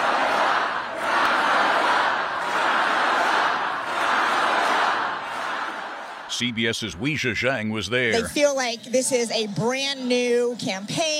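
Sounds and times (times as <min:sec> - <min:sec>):
raucous crowd of thousands cheering at rally in Battleground, Wisconsin: 0:00.0 - 0:07.2
speech: 0:06.4 - 0:11.1.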